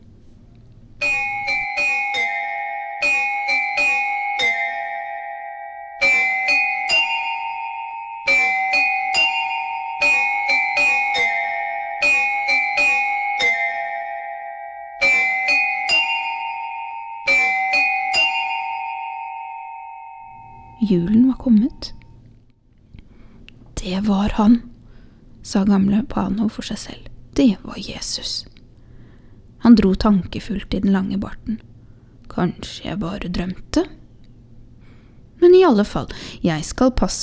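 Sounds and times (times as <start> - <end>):
bells ringing from all sides: 1.0 - 22.0
speech: 24.4 - 24.6, 25.8 - 28.5, 29.7 - 31.7, 32.3 - 34.0, 35.4 - 37.2.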